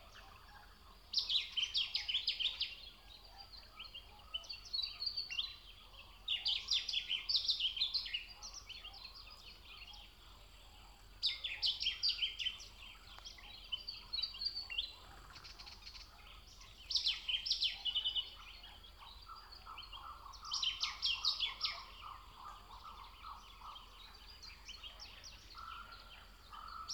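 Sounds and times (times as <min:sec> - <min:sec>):
bird singing by the pond: 0:00.0 - 0:26.9
nature ambience: 0:00.0 - 0:26.9.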